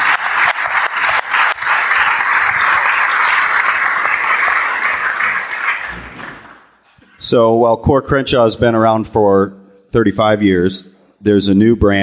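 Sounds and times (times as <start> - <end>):
audience round of applause: 0.0 - 6.8
speech: 7.3 - 12.0.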